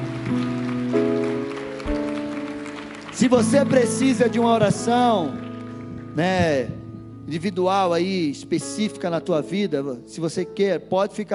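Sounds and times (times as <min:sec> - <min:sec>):
audience applause: 0:00.0 - 0:06.2
speech: 0:03.2 - 0:05.4, 0:06.2 - 0:11.3.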